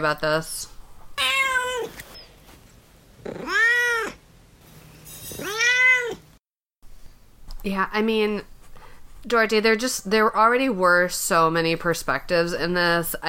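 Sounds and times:
speech: 0.0 - 0.7, 7.6 - 8.5, 9.2 - 13.2
cat meowing: 1.2 - 2.0, 3.3 - 4.2, 5.4 - 6.2.

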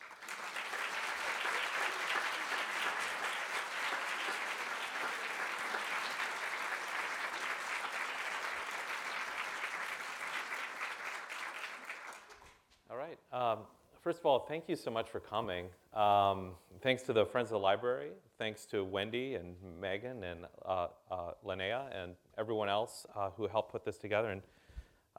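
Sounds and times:
audience applause welcoming guest speakers at a Friends of the Library event: 0.0 - 12.5
speech: 13.1 - 24.6.

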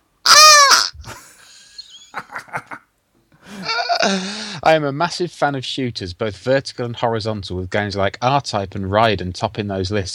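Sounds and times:
squeezed toy sheep giving a buzzy moo-like bleat: 0.2 - 0.9
speech: 4.0 - 10.1.

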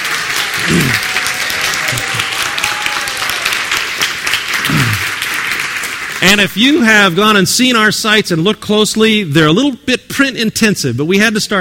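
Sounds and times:
audience applause: 0.0 - 6.8
speech: 6.2 - 11.5.

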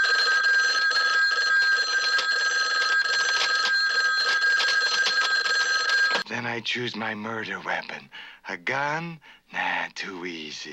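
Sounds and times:
telephone ringing: 0.0 - 6.3
speech: 6.3 - 10.7.

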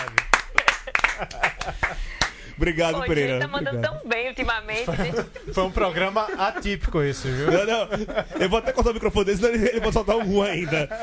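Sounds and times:
quick irregular hand claps: 0.0 - 2.4
laughter: 0.0 - 11.0
speech: 1.2 - 11.0
voices talking and exclaiming: 2.7 - 10.8.

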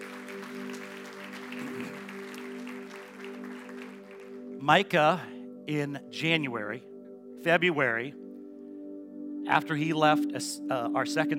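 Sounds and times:
audience applause: 0.0 - 4.6
speech: 4.6 - 8.2, 9.5 - 11.3.

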